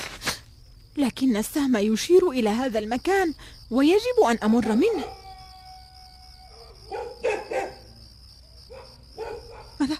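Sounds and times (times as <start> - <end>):
speech: 1.0 - 5.2
dogs barking: 4.5 - 5.3, 6.4 - 8.0, 8.7 - 9.8.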